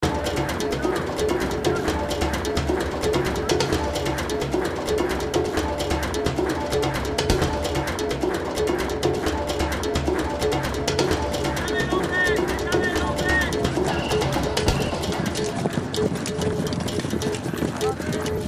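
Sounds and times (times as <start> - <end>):
Argentine music loop: 0.0 - 18.4.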